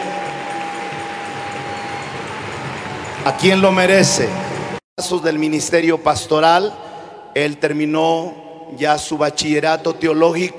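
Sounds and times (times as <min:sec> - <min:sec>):
loud audience applause: 0:00.0 - 0:04.8
speech: 0:03.2 - 0:06.8, 0:07.4 - 0:10.5.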